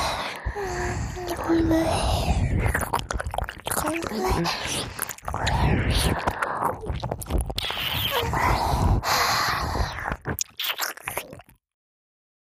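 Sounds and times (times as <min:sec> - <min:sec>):
soft whispering: 0:00.0 - 0:10.4
speech: 0:01.4 - 0:03.0, 0:03.9 - 0:07.4
wet chewing of someone eating: 0:02.5 - 0:11.6.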